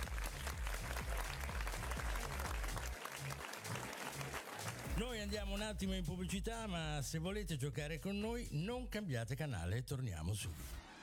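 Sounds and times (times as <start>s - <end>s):
audience applause: 0.0s - 5.0s
speech: 5.0s - 10.8s.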